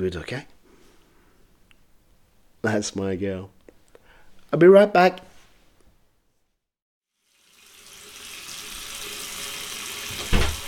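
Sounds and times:
speech: 0:00.0 - 0:00.6, 0:02.6 - 0:03.6, 0:04.5 - 0:05.2
water pouring from a tap into a bathtub: 0:07.2 - 0:10.6
splash or clunk: 0:10.1 - 0:10.6.

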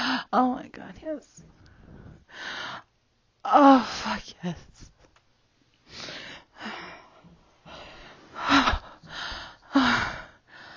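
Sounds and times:
speech: 0:00.3 - 0:04.9
heavy rapid panting and gasping breaths: 0:06.0 - 0:10.7.

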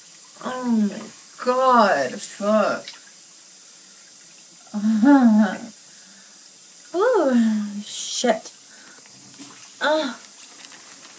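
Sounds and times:
shower head running water: 0:00.0 - 0:11.1
speech: 0:00.6 - 0:03.0, 0:04.8 - 0:05.6, 0:07.0 - 0:08.5, 0:09.8 - 0:10.2.

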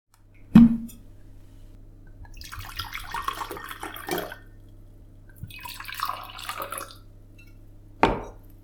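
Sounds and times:
wine gurgling as it splashes into a glass: 0:02.3 - 0:04.5, 0:05.3 - 0:07.1.

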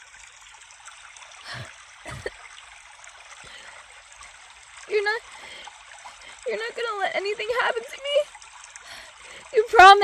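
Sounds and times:
rushing water from a stream or river: 0:00.0 - 0:10.0
speech: 0:04.9 - 0:05.4, 0:06.5 - 0:08.3, 0:09.5 - 0:10.0.

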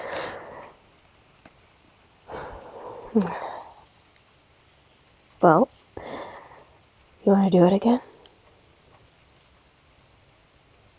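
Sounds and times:
heavy breathing: 0:00.0 - 0:00.8, 0:02.3 - 0:03.9, 0:06.0 - 0:06.8
speech: 0:03.1 - 0:03.5, 0:05.4 - 0:05.8, 0:07.3 - 0:08.1.

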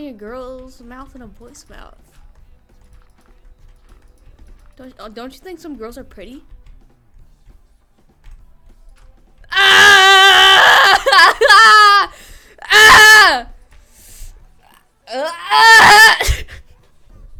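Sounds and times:
speech: 0:00.0 - 0:02.2, 0:04.8 - 0:06.6, 0:15.1 - 0:16.4
person screaming in pain: 0:09.5 - 0:13.5, 0:15.1 - 0:16.6.

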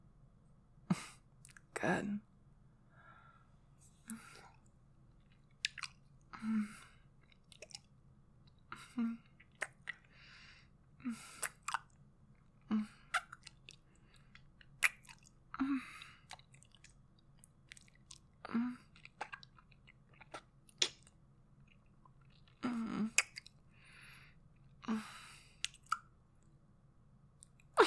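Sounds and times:
speech: 0:01.8 - 0:02.3
quiet breaths: 0:02.7 - 0:05.5, 0:06.2 - 0:07.9, 0:08.5 - 0:11.6, 0:12.5 - 0:14.6, 0:15.5 - 0:19.0, 0:22.4 - 0:25.8
mouth chewing and biting: 0:05.3 - 0:06.0, 0:07.3 - 0:07.9, 0:09.4 - 0:10.1, 0:13.1 - 0:15.3, 0:16.2 - 0:18.3, 0:18.9 - 0:21.1, 0:21.7 - 0:23.6.

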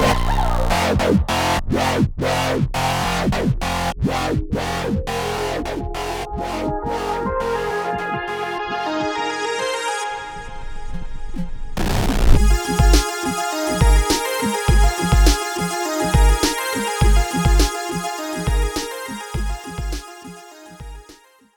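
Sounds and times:
glitch hop music: 0:00.0 - 0:09.5, 0:11.8 - 0:21.2.

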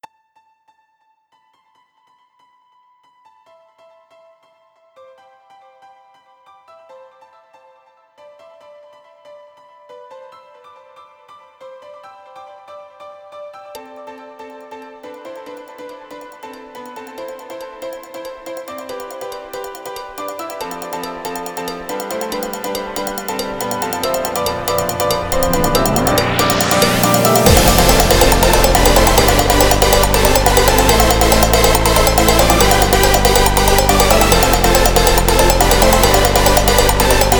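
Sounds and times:
hardbell: 0:16.2 - 0:37.3.

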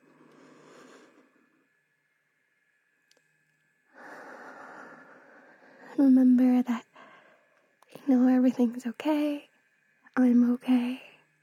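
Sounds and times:
deep breathing from a single person: 0:00.0 - 0:01.6, 0:03.9 - 0:06.0, 0:06.9 - 0:07.6
speech: 0:06.0 - 0:06.8, 0:08.5 - 0:09.5, 0:10.2 - 0:11.1.

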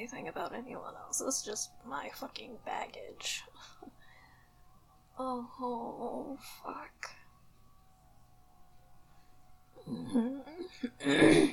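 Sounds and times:
speech: 0:00.0 - 0:04.0, 0:05.2 - 0:07.2, 0:09.8 - 0:11.5
throat being cleared of phlegm: 0:09.9 - 0:11.5.

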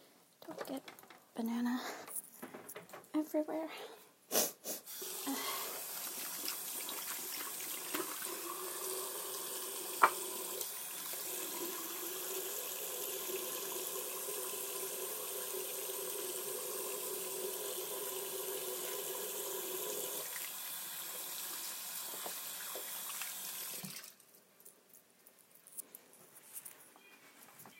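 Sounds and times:
speech: 0:00.5 - 0:02.1, 0:03.2 - 0:04.4
tap water running: 0:04.9 - 0:24.2.

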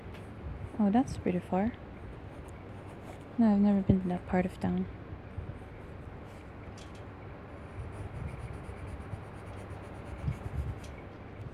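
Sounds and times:
steady low rumble: 0:00.0 - 0:11.5
speech: 0:00.8 - 0:01.9, 0:03.4 - 0:05.0
pencil drawing on paper: 0:07.7 - 0:10.8.

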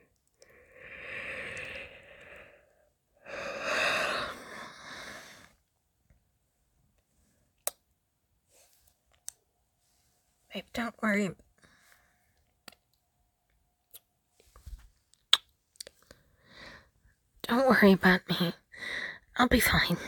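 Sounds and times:
heavy breathing: 0:00.4 - 0:05.6
speech: 0:10.6 - 0:11.4, 0:17.8 - 0:20.0.

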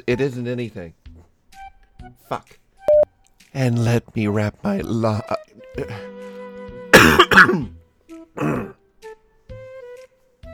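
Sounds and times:
speech: 0:00.0 - 0:01.0, 0:02.2 - 0:02.6, 0:03.5 - 0:06.1, 0:07.4 - 0:07.8, 0:08.4 - 0:08.8
murmurs: 0:03.6 - 0:06.2, 0:08.4 - 0:08.8
throat clearing: 0:05.7 - 0:06.1, 0:06.9 - 0:07.8, 0:08.4 - 0:08.8.

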